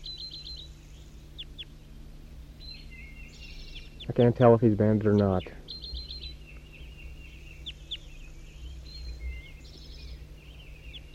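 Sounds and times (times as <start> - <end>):
wild bird whistled trill: 0.0 - 1.7, 2.6 - 4.1, 5.7 - 11.1
steady low hum: 0.0 - 11.1
wild bird calls: 0.0 - 11.1
speech: 4.1 - 5.6.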